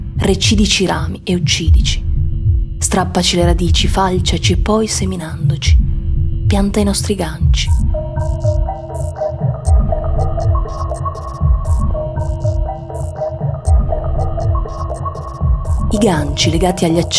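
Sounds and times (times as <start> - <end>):
deep throbbing low rumble: 0.0 - 8.9, 9.5 - 12.8, 13.5 - 17.1
speech: 0.2 - 2.1, 2.8 - 5.9, 6.5 - 8.3, 15.9 - 17.1
sharp high clicks: 7.7 - 16.6
whale song: 7.9 - 17.1.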